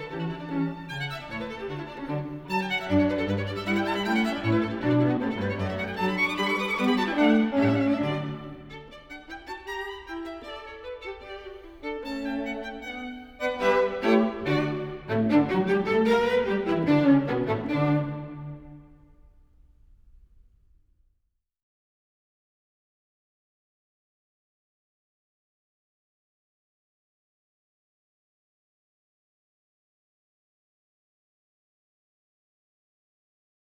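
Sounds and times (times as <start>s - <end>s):
string quartet in D major: 0.0s - 19.0s.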